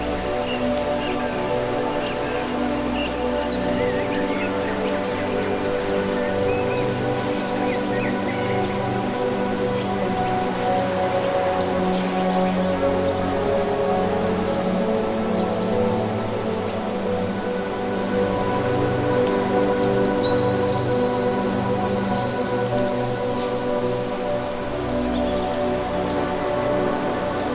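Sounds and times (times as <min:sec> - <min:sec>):
nature ambience: 0:00.0 - 0:27.5.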